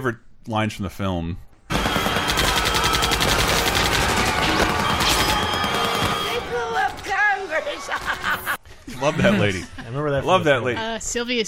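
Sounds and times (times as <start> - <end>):
speech: 0.0 - 1.5, 9.0 - 11.4
alien gun firing in the film Mars Attacks: 1.7 - 7.1
laughter: 7.5 - 10.8.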